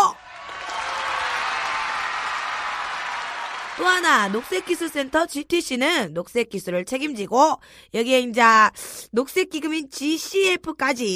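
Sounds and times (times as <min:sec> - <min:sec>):
applause: 0:00.0 - 0:05.4
speech: 0:03.8 - 0:11.1.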